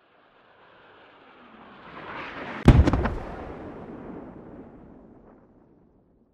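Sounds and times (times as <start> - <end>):
mortar impact 100m away: 2.7 - 3.6.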